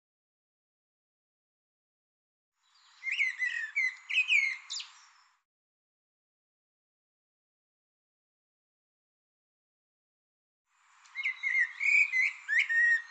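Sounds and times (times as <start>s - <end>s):
bird song: 2.6s - 5.4s, 10.8s - 13.0s.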